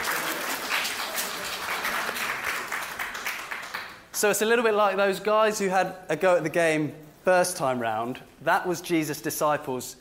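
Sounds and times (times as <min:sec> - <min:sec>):
round of applause: 0:00.0 - 0:04.1
speech: 0:04.2 - 0:09.9.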